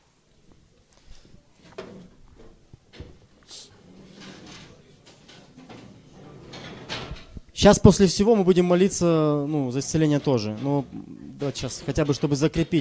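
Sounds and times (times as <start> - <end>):
chairs being moved aside in a room: 1.6 - 7.5, 9.8 - 12.7
speech: 7.6 - 12.7.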